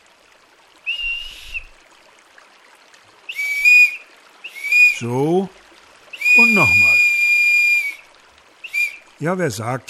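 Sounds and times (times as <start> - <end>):
hand-carved slide flute whistling: 0.9 - 1.7, 3.3 - 5.0, 6.2 - 8.0, 8.6 - 9.1
speech: 5.0 - 5.6, 6.4 - 7.1, 9.2 - 9.8.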